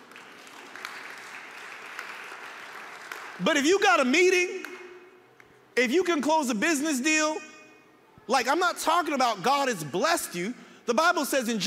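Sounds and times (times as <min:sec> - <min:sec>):
audience applause: 0:00.0 - 0:03.4
speech: 0:03.4 - 0:04.6, 0:05.8 - 0:07.5, 0:08.3 - 0:11.6.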